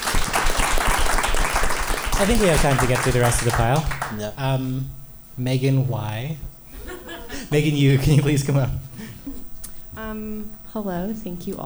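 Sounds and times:
audience applause: 0:00.0 - 0:04.3
speech: 0:02.2 - 0:06.5, 0:07.5 - 0:08.8, 0:10.1 - 0:11.6
laughter: 0:06.7 - 0:09.5.

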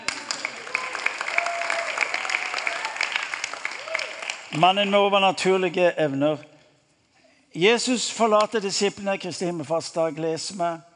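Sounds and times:
audience clapping: 0:00.0 - 0:04.9
speech: 0:04.5 - 0:06.5, 0:07.6 - 0:10.9.

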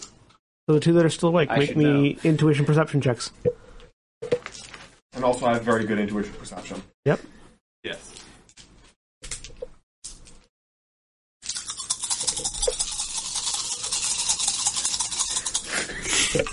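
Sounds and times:
speech: 0:00.7 - 0:03.6, 0:05.2 - 0:08.2
dice rattling and rolling: 0:11.6 - 0:15.7.

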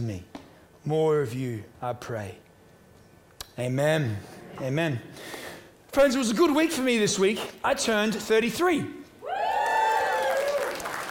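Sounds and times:
speech: 0:00.0 - 0:02.4, 0:03.6 - 0:09.0
audience applause: 0:09.3 - 0:11.0.

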